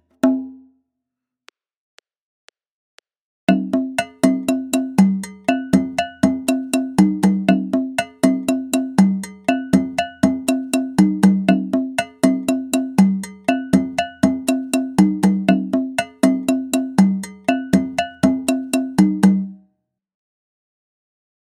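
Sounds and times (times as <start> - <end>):
Latin American iyesa rhythm music: 3.5 - 19.6.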